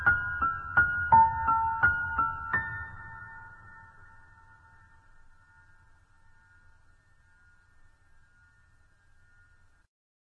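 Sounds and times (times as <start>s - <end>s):
piano instrumental: 0.0s - 5.8s.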